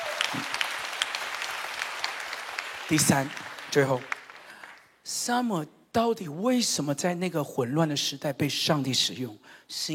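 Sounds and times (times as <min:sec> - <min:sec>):
audience clapping: 0:00.0 - 0:05.0
speech: 0:02.9 - 0:04.1, 0:05.0 - 0:09.9.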